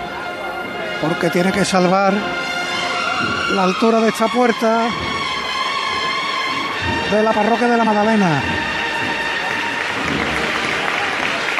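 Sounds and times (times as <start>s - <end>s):
faint murmur of voices: 0.0s - 11.5s
speech: 1.0s - 2.5s, 3.2s - 5.1s, 7.1s - 8.6s
large crowd applauding outdoors: 2.8s - 11.5s.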